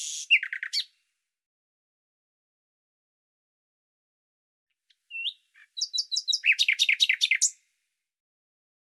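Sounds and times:
bird song: 0.0 - 1.1, 4.9 - 7.8.

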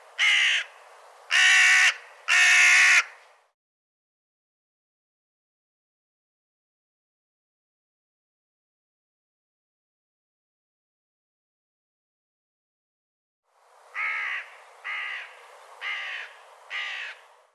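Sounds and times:
bird cawing: 0.2 - 3.2, 13.9 - 17.3.

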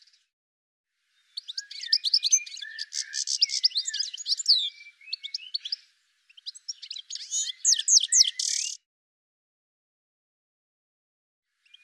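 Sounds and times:
bird calling with rapid high chirps and short trills: 1.2 - 8.8, 11.6 - 11.8.

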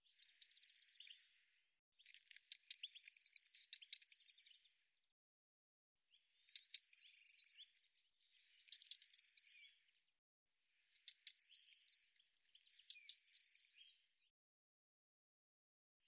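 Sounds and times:
bird singing: 0.0 - 1.3, 2.4 - 4.7, 6.1 - 9.9, 10.9 - 14.3.

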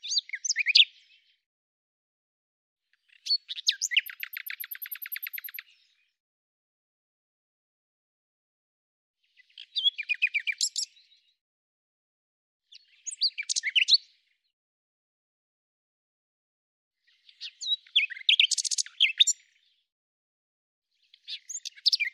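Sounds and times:
bird song: 0.0 - 1.5, 2.8 - 6.3, 9.2 - 11.4, 12.6 - 14.6, 17.0 - 19.9, 20.8 - 22.1.

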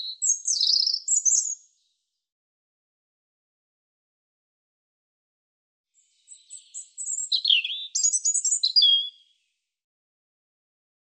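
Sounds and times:
European robin song of high thin warbles and trills: 0.0 - 1.7, 6.1 - 9.3.

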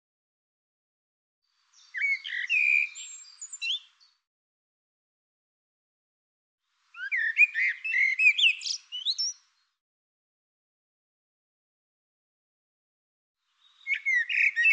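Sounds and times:
bird singing bright phrases of varied whistles and chirps: 1.7 - 4.2, 7.0 - 9.8, 13.6 - 14.7.

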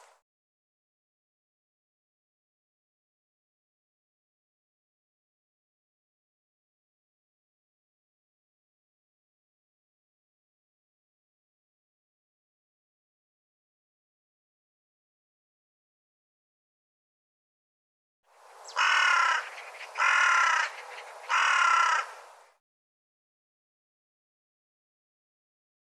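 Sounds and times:
bird harsh raspy caws: 18.6 - 22.4.

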